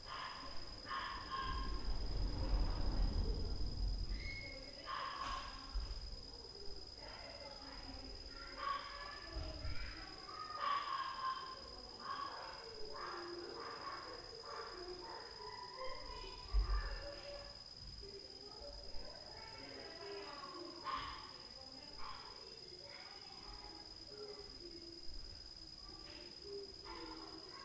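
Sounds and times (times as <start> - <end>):
children at night: 0.0 - 27.6
dog at night: 0.1 - 1.9, 4.8 - 5.6, 8.4 - 17.1, 20.8 - 21.4.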